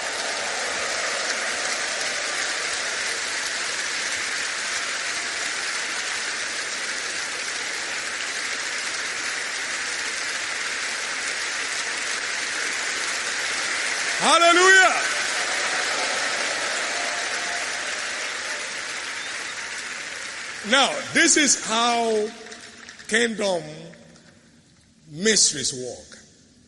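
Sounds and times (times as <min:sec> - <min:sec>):
audience clapping: 0:00.0 - 0:24.0
speech: 0:14.3 - 0:15.0, 0:20.7 - 0:22.5, 0:23.1 - 0:24.0, 0:25.1 - 0:26.2.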